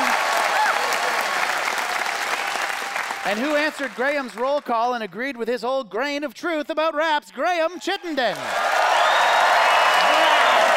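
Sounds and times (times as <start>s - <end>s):
audience applause vote: 0.0s - 4.7s, 8.2s - 10.7s
speech: 3.2s - 8.6s.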